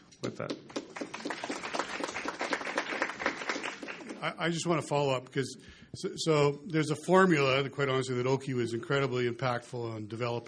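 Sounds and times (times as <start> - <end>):
speech: 0.2 - 0.8, 4.2 - 10.4
round of applause: 0.4 - 4.4.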